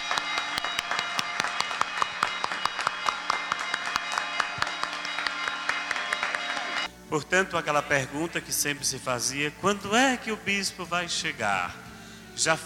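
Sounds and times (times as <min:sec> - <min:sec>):
standing audience applauding: 0:00.0 - 0:06.9
speech: 0:07.1 - 0:11.8, 0:12.4 - 0:12.6.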